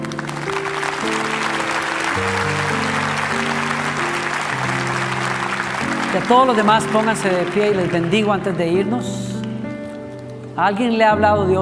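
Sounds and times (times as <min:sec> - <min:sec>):
crowd applause: 0:00.0 - 0:08.9
sustained keyboard chords: 0:00.0 - 0:11.6
speech: 0:06.1 - 0:09.3, 0:10.6 - 0:11.6.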